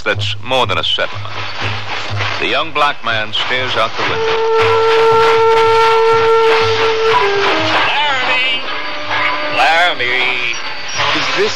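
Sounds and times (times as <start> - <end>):
speech: 0.0 - 8.6, 9.6 - 10.5, 11.4 - 11.5
train wheels rumbling: 0.0 - 11.5
train brakes squealing while slowing: 3.8 - 11.5.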